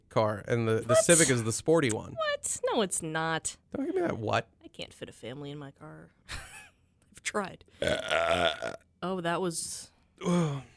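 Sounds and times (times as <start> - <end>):
speech: 0.2 - 6.3, 7.2 - 10.7
loud throaty burp: 7.8 - 8.9.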